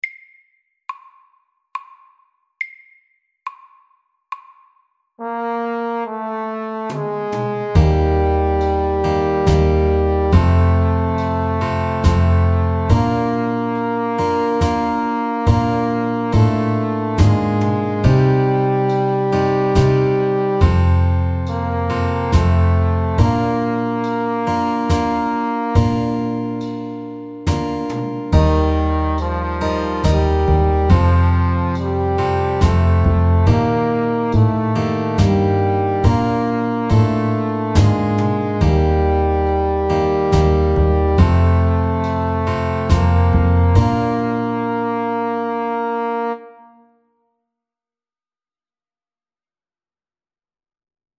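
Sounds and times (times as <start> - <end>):
slow ballad: 6.0 - 46.4.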